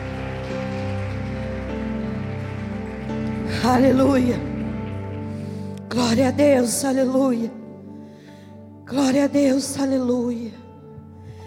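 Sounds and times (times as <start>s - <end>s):
audience applauding: 0.0s - 5.9s
sustained keyboard chords: 0.0s - 11.4s
speech: 3.6s - 4.5s, 6.0s - 7.6s, 8.9s - 10.6s.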